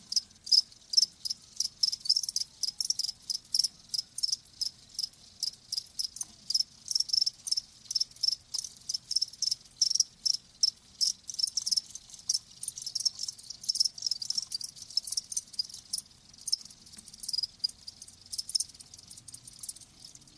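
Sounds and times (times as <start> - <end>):
crickets chirping: 0.0 - 20.3
shimmering insect background: 0.1 - 20.3.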